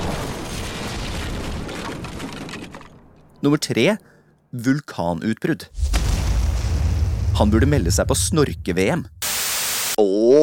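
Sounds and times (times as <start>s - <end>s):
atomic bomb explosion: 0.0s - 2.0s, 5.7s - 9.9s
speech: 3.4s - 6.0s, 7.4s - 9.2s, 10.0s - 10.4s.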